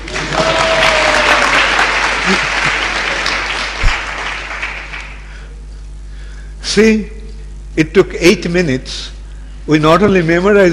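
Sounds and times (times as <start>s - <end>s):
group clapping: 0.0s - 5.4s
speech: 6.8s - 7.2s, 7.8s - 10.7s.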